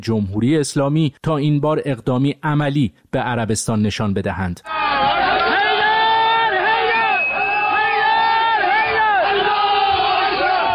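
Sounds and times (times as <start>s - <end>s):
speech: 0.0s - 4.8s
jubilant crowd of attackers shouting at the Saudi embassy in Tehran: 4.7s - 10.7s.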